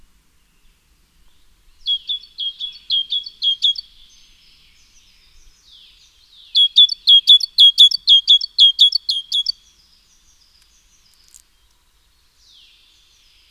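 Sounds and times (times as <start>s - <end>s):
Great tit Parus major singing: 1.4s - 11.8s.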